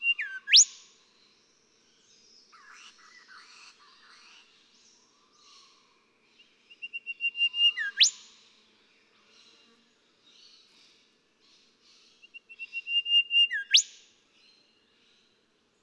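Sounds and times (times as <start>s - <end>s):
Golden whistler whistling with rising whipcrack: 0.2s - 0.7s, 7.6s - 8.2s, 13.2s - 13.9s.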